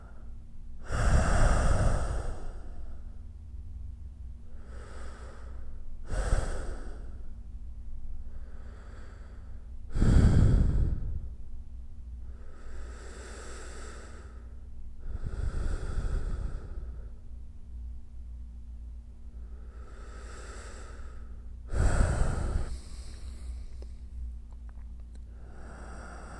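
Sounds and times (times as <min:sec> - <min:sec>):
person breathing: 0:00.0 - 0:03.2, 0:04.4 - 0:07.4, 0:08.2 - 0:11.5, 0:12.2 - 0:17.4, 0:19.3 - 0:24.3, 0:25.2 - 0:26.3.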